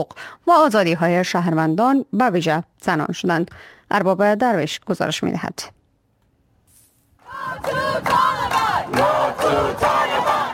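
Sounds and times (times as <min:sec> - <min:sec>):
speech: 0:00.0 - 0:05.8, 0:07.3 - 0:10.4
Afghan women protesters chanting slogans against Taliban rule in Toronto: 0:07.2 - 0:10.5.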